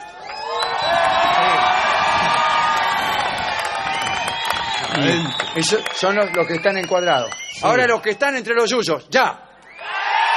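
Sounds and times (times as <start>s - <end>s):
audience shouting from the front rows: 0.0s - 5.4s, 9.8s - 10.3s
speech: 5.0s - 9.4s.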